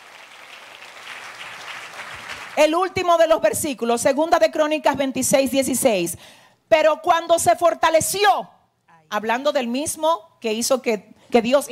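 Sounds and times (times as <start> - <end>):
church congregation applauding: 0.0 - 2.7
speech: 2.6 - 11.7.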